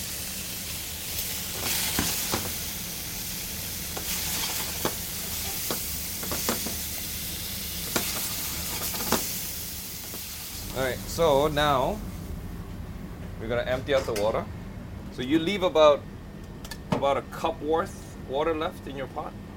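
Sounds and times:
steak sizzling in a hot pan: 0:00.0 - 0:10.7
speech: 0:10.8 - 0:12.1, 0:13.4 - 0:14.6, 0:15.2 - 0:16.1, 0:17.0 - 0:19.4.

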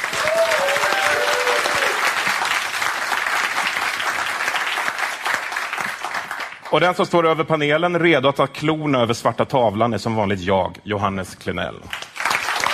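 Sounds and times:
audience applause: 0:00.0 - 0:06.7, 0:11.9 - 0:12.7
speech: 0:06.7 - 0:12.0.

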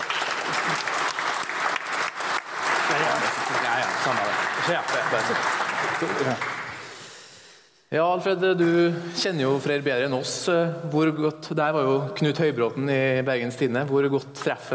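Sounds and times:
audience applause: 0:00.0 - 0:07.0
speech: 0:03.5 - 0:06.6, 0:07.9 - 0:14.7.

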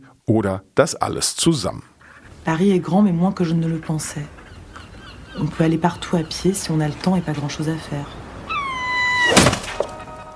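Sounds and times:
speech: 0:00.2 - 0:04.4, 0:05.4 - 0:08.2
dead bird falling from the sky: 0:08.5 - 0:10.0.

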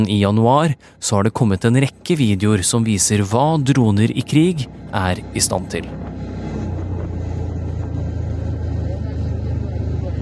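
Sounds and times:
speech: 0:00.0 - 0:06.3
road noise: 0:00.0 - 0:10.1
golf cart driving with steady motor hum: 0:04.7 - 0:10.1.

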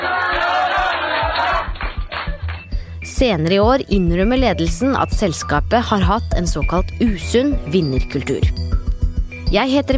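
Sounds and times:
employees cheering: 0:00.0 - 0:02.5
employees clapping: 0:00.0 - 0:02.8
speech: 0:03.2 - 0:08.6, 0:09.5 - 0:09.9.

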